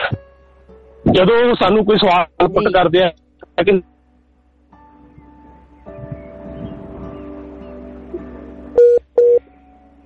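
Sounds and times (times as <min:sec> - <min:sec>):
speech: 0:01.1 - 0:03.9
telephone line beeps after a caller's phone disconnects: 0:08.8 - 0:09.4.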